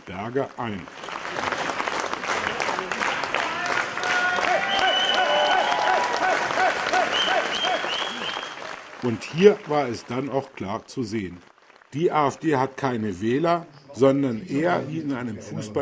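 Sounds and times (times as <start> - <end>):
crowd applauding: 0.0 - 13.5
speech: 0.1 - 1.5, 9.0 - 15.8
crowd cheering: 1.0 - 10.7.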